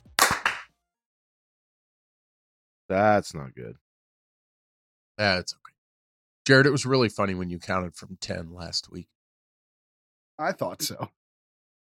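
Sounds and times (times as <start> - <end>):
sharp hand claps: 0.0 - 0.7
speech: 2.9 - 3.8, 5.2 - 5.7, 6.4 - 9.2, 10.4 - 11.2.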